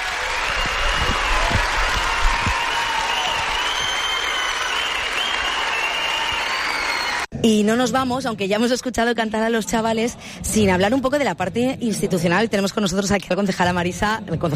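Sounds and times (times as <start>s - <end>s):
audience applauding: 0.0s - 7.3s
speech: 7.4s - 14.5s.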